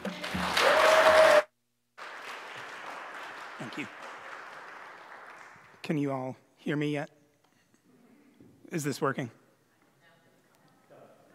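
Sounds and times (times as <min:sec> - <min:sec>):
audience applauding a speaker at a church gathering: 0:00.0 - 0:06.1
low noise: 0:00.0 - 0:11.3
speech: 0:03.8 - 0:04.0, 0:05.9 - 0:07.2, 0:08.7 - 0:09.4.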